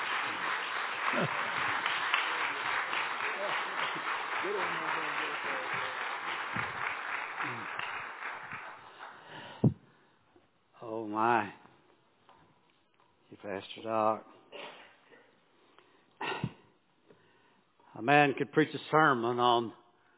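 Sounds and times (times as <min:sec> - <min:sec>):
church congregation applauding to welcome a preacher: 0:00.0 - 0:10.0
speech: 0:13.5 - 0:14.3, 0:18.0 - 0:19.8.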